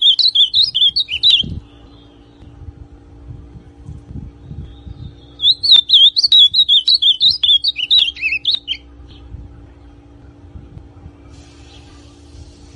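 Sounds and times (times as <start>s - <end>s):
ultramarine grosbeak song: 0.0s - 2.6s, 4.4s - 9.3s.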